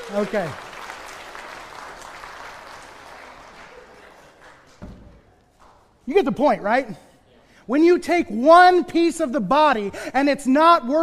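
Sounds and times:
audience applause: 0:00.0 - 0:04.8
speech: 0:00.1 - 0:00.6, 0:06.1 - 0:07.1, 0:07.7 - 0:11.0.

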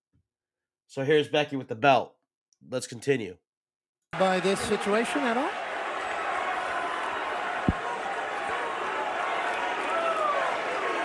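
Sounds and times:
speech: 0:00.9 - 0:03.4, 0:04.1 - 0:05.6
wrestling arena crowd chanting: 0:04.2 - 0:11.0.

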